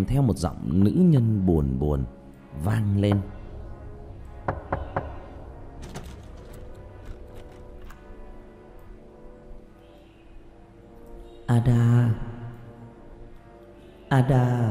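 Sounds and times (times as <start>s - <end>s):
speech: 0.0s - 3.4s, 11.5s - 12.3s, 14.1s - 14.6s
steady low tone: 0.0s - 14.6s
knocking from inside a coffin: 4.5s - 5.2s.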